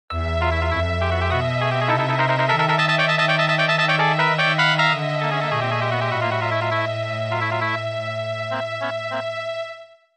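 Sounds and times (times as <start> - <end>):
tense music: 0.1 - 9.9.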